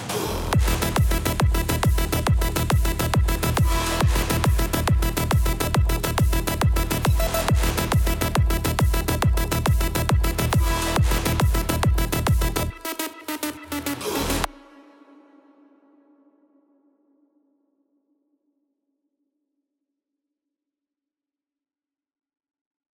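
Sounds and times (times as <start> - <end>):
mixed psytrance drop: 0.0 - 14.6.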